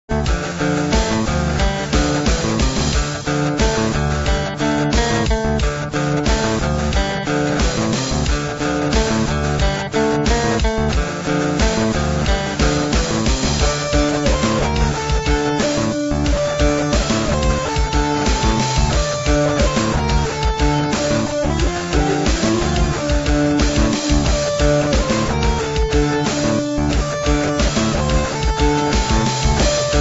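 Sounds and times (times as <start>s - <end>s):
guitar: 0.0s - 29.9s.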